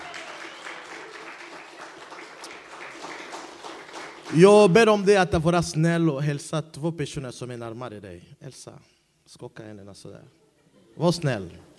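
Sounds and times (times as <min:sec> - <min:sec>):
audience applause: 0:00.0 - 0:04.8
speech: 0:04.3 - 0:10.4, 0:11.0 - 0:11.7.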